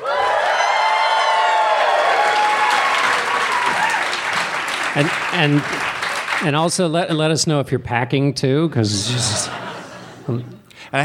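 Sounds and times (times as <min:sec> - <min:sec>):
live audience cheering and applauding: 0:00.0 - 0:06.6
speech: 0:05.0 - 0:09.7, 0:10.3 - 0:11.0
laughter: 0:08.7 - 0:10.7.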